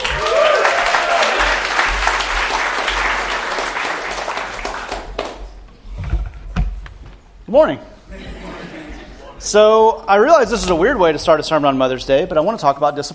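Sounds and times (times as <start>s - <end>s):
church congregation applauding to welcome a speaker: 0.0s - 5.6s
speech: 7.5s - 7.9s, 9.4s - 13.1s.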